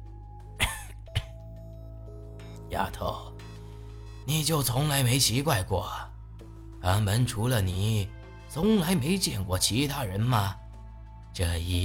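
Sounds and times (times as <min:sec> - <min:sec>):
light coughs: 0:00.6 - 0:01.5
speech: 0:02.7 - 0:03.3, 0:04.2 - 0:06.1, 0:06.8 - 0:10.6, 0:11.4 - 0:11.8.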